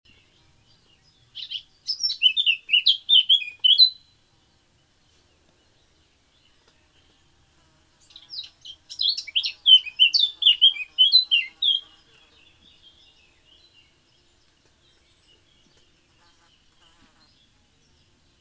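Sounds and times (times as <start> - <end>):
Eurasian blackcap song: 0.1 - 18.3.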